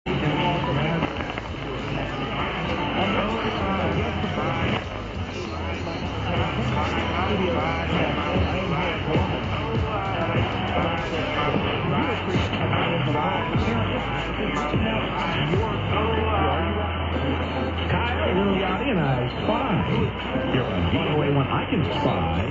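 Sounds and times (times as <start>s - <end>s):
music: 0.0s - 22.4s.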